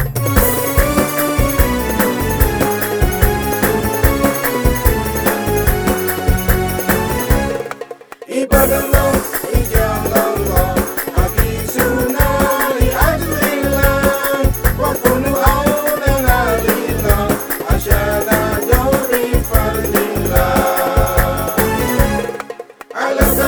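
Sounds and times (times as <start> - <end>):
Arabic song: 0.2 - 23.4.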